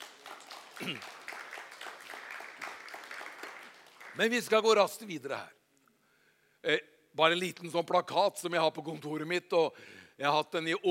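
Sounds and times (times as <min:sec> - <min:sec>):
audience applause: 0:00.0 - 0:04.6
speech: 0:00.8 - 0:01.2, 0:04.2 - 0:05.6, 0:06.6 - 0:10.8.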